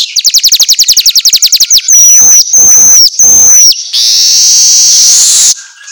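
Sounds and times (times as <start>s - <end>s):
soft downward chirps from other birds: 0.1s - 5.5s
Asian golden weaver song: 0.2s - 5.5s.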